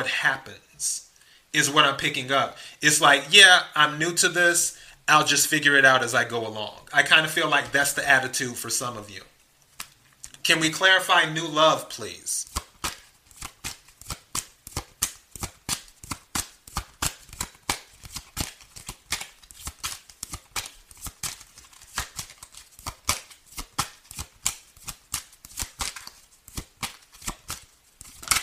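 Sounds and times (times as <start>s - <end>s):
speech: 0.0s - 9.3s, 10.4s - 12.6s
tarot cards shuffled by hand: 9.6s - 10.4s, 12.4s - 28.4s.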